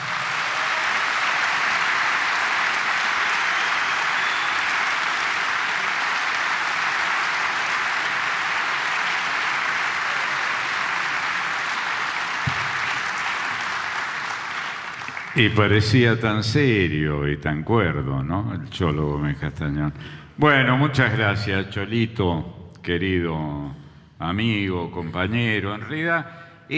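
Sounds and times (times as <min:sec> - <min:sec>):
audience applause: 0:00.0 - 0:15.5
speech: 0:15.4 - 0:26.7.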